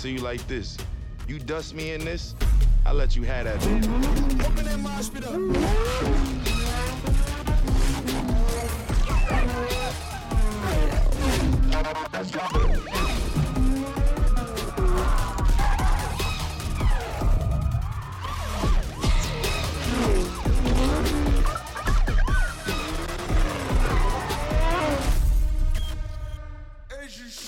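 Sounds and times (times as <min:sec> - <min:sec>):
speech: 0:00.0 - 0:06.6
racing car engines roaring in a Need for Speed trailer: 0:03.3 - 0:25.9
tyres skidding: 0:03.6 - 0:25.2.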